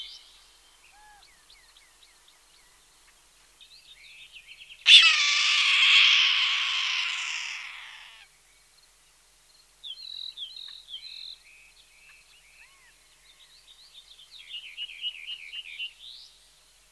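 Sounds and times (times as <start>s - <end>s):
red-tailed hawk calling: 4.9s - 8.1s.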